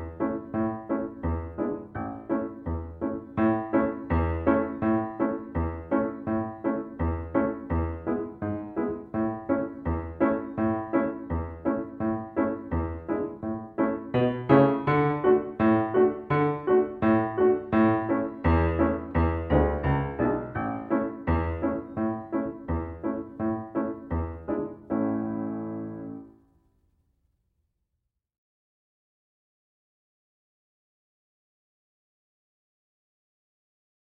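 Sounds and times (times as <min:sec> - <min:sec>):
piano: 0:00.0 - 0:26.9.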